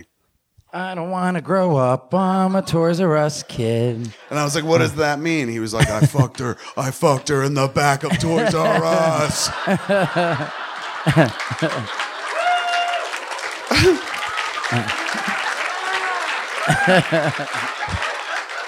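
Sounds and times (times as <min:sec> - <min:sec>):
speech: 0:00.7 - 0:12.0, 0:13.8 - 0:14.1, 0:14.7 - 0:15.3, 0:16.7 - 0:18.0
laughter: 0:03.4 - 0:18.6
audience applause: 0:08.1 - 0:18.6.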